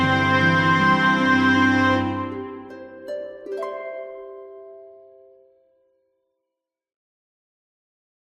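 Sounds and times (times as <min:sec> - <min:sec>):
orchestral cover: 0:00.0 - 0:05.4.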